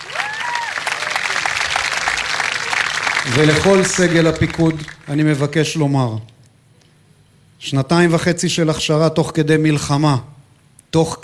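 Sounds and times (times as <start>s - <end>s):
audience applause: 0.0s - 5.4s
speech: 3.2s - 6.3s, 7.6s - 10.3s, 10.9s - 11.2s.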